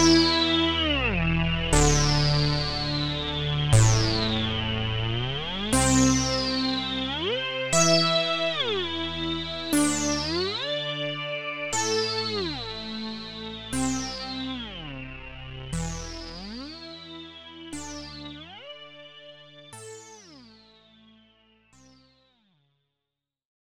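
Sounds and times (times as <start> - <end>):
Roland SH 01A synthesizer lead: 0.0 - 18.6.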